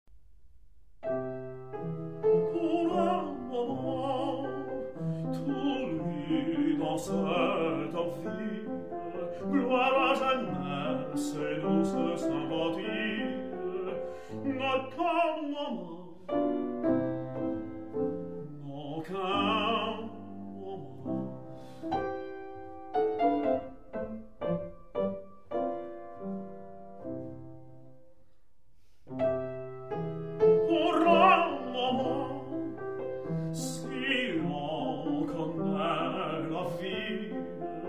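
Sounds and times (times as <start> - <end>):
piano: 0.1 - 37.8
person singing: 2.4 - 16.4, 18.4 - 21.4, 30.5 - 32.8, 33.6 - 37.8.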